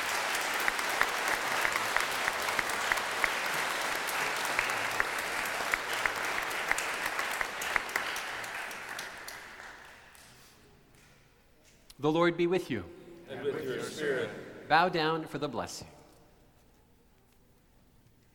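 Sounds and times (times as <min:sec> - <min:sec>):
church service audience applauding graduates: 0:00.0 - 0:10.4
speech: 0:12.0 - 0:13.0, 0:14.0 - 0:16.0.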